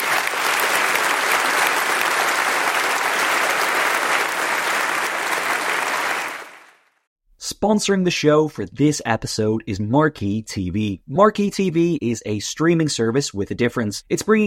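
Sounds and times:
round of applause: 0.0s - 7.1s
speech: 7.6s - 14.4s.

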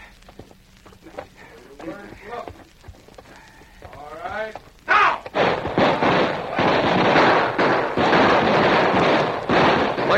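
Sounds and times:
gunfire between outlaws and posse in radio drama: 4.9s - 10.1s.

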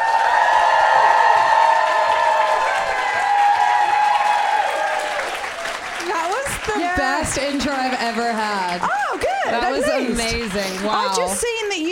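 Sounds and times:
cheers and whoops: 0.0s - 5.9s, 8.8s - 9.6s
audience applause: 0.0s - 11.9s
speech: 7.3s - 11.9s.

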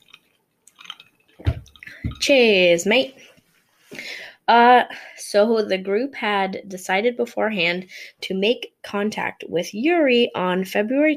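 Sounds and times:
person sipping a drink: 0.0s - 2.1s
speech: 2.3s - 3.3s, 4.5s - 11.1s.

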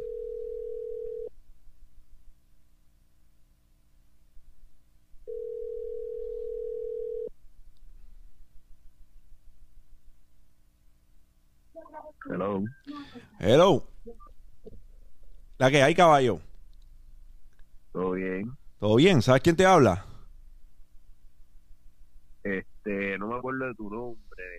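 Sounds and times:
low-pitched telephone ringback tones: 0.0s - 1.3s, 5.3s - 7.3s
speech: 12.1s - 14.2s, 15.6s - 16.5s, 18.0s - 20.1s, 22.5s - 24.5s.

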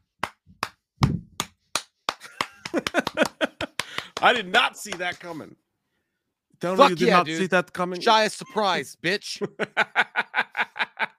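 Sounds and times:
single person slow clapping: 0.2s - 0.8s, 1.4s - 5.1s
laughter: 2.2s - 4.4s, 8.4s - 11.1s
speech: 4.2s - 5.6s, 6.6s - 10.2s.

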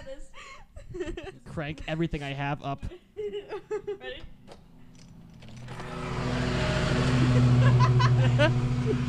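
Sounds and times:
speech: 0.1s - 3.0s, 7.4s - 9.0s
laughter: 0.8s - 1.5s, 2.8s - 4.2s, 7.2s - 9.0s
lawn mower running: 5.0s - 9.0s.

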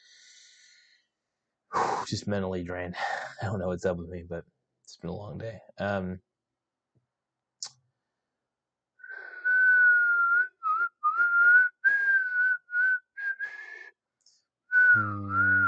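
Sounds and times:
speech: 2.1s - 6.3s
person whistling: 9.0s - 13.9s, 14.7s - 15.6s.

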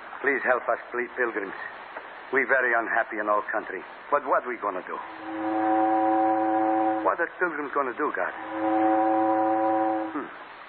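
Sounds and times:
speech: 0.2s - 5.7s, 7.0s - 8.9s, 10.1s - 10.4s
steamboat whistle: 5.0s - 7.1s, 8.3s - 10.3s.

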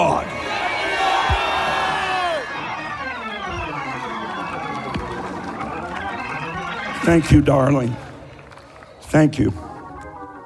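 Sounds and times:
crowd screaming loudly: 0.0s - 9.0s
speech: 7.1s - 8.0s, 9.1s - 9.6s.

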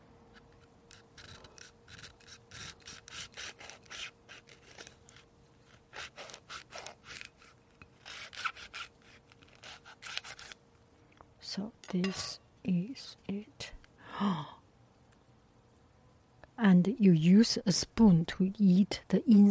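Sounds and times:
knife cutting through a passion fruit: 0.3s - 10.6s
speech: 11.6s - 13.6s, 16.7s - 19.4s.

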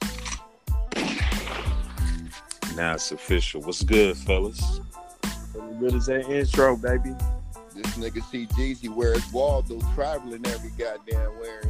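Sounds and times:
gunshot sound effect: 0.9s - 1.8s
speech: 2.8s - 5.0s, 5.6s - 11.6s.

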